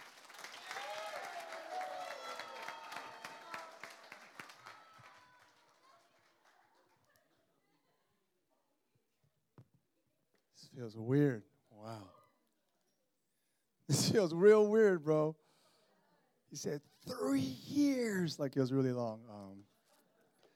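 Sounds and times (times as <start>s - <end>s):
audience applause and cheering at a worship gathering welcoming a pastor: 0.0s - 6.8s
speech: 10.7s - 12.2s, 14.1s - 15.4s, 16.5s - 19.7s.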